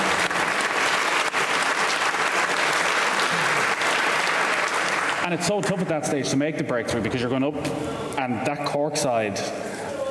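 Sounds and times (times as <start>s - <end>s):
audience applause: 0.0s - 5.4s
speech: 5.3s - 9.6s.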